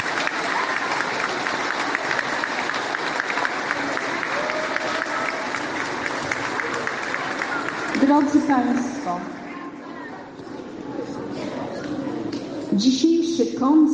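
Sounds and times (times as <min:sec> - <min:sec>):
crowd clapping: 0:00.0 - 0:09.4
speech: 0:08.1 - 0:09.4, 0:12.8 - 0:13.9.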